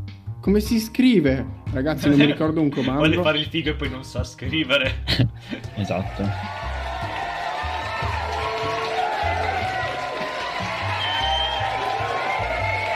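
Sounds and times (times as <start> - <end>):
speech: 0.4 - 6.6
laughter: 2.0 - 3.4, 4.6 - 7.5
applause: 5.7 - 12.9.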